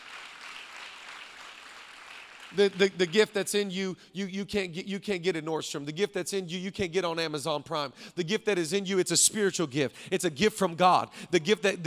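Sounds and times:
audience clapping: 0.0 - 3.6
speech: 2.5 - 11.8.

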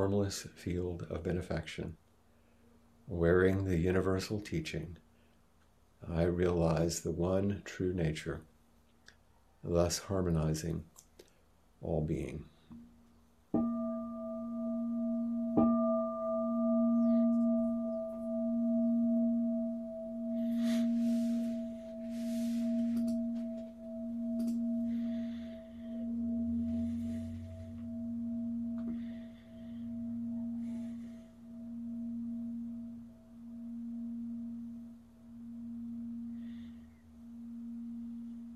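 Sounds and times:
speech: 0.0 - 2.0, 3.1 - 5.0, 6.0 - 8.5, 9.6 - 10.9, 11.8 - 12.8
meditation bell ringing: 13.5 - 38.5.

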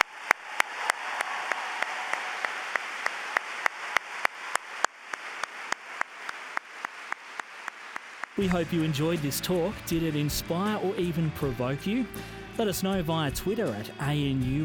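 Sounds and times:
audience applause: 0.0 - 11.2
speech: 8.4 - 14.6.

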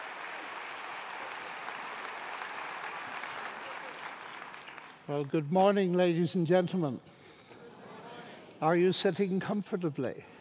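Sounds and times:
crowd applauding: 0.0 - 5.5
speech: 5.1 - 7.2, 8.6 - 10.3.

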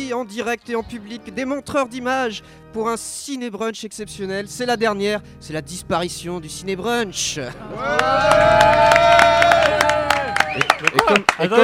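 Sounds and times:
speech: 0.1 - 9.8, 10.6 - 11.6
audience applause: 7.7 - 11.6
voices cheering: 7.7 - 11.6.

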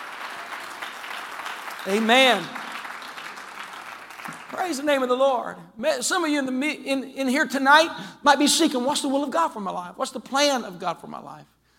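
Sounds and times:
audience clapping hands: 0.0 - 5.1
speech: 1.8 - 2.6, 4.5 - 11.6.

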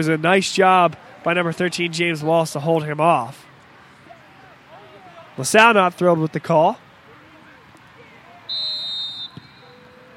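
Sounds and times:
speech: 0.0 - 3.5, 5.4 - 6.8
referee's whistle: 8.5 - 10.1.

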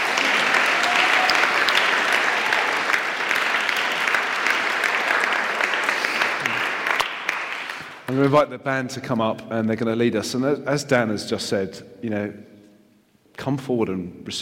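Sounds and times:
audience applause: 0.0 - 8.4
speech: 8.2 - 12.5, 13.4 - 14.4.

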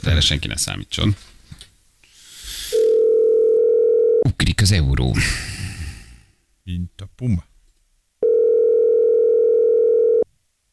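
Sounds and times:
speech: 0.0 - 1.4, 4.2 - 5.5, 6.7 - 7.5
telephone call tone for an unanswered call: 2.7 - 4.2, 8.2 - 10.3.

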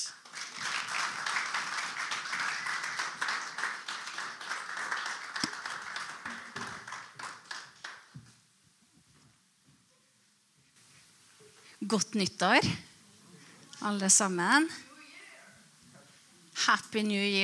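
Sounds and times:
audience applause: 0.0 - 8.2
speech: 11.9 - 12.9, 13.8 - 14.9, 16.7 - 17.4.

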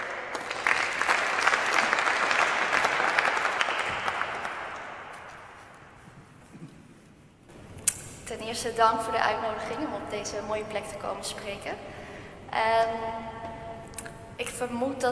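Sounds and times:
audience applause: 0.0 - 5.7
speech: 8.5 - 13.4, 14.4 - 15.1.

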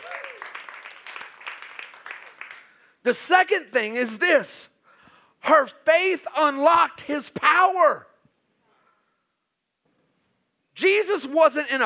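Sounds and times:
audience clapping: 0.0 - 3.0
speech: 3.0 - 4.7, 5.4 - 8.1, 10.8 - 11.8.

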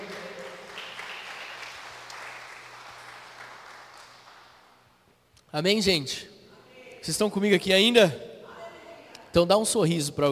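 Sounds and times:
audience applause: 0.0 - 4.6
speech: 5.5 - 6.3, 7.0 - 8.3, 9.3 - 10.2.

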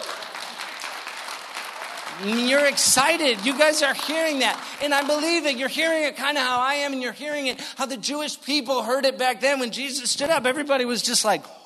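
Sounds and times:
crowd applauding: 0.0 - 6.1
speech: 2.2 - 11.6.

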